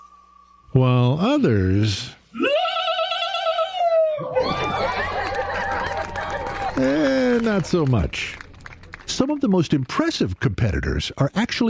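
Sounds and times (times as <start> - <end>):
speech: 0.8 - 2.2, 6.8 - 8.4, 9.2 - 11.6
person imitating common loon call: 2.4 - 4.6
laughter: 4.2 - 8.2.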